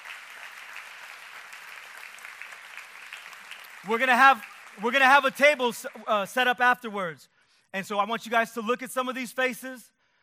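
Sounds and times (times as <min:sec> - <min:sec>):
audience applause: 0:00.0 - 0:06.3
speech: 0:03.8 - 0:09.9.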